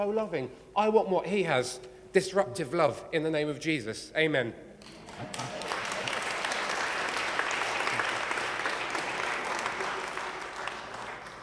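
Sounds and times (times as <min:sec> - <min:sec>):
speech: 0:00.0 - 0:05.6
audience applause: 0:05.0 - 0:11.4.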